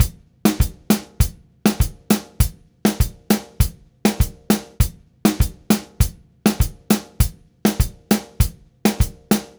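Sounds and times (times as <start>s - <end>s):
drum kit: 0.0s - 9.5s
zouk Latin percussion: 0.0s - 9.5s.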